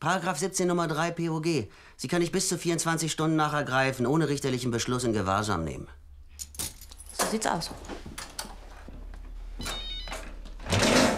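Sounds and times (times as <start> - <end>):
speech: 0.0 - 6.0, 7.3 - 8.1
mobile phone ringing: 9.6 - 10.3.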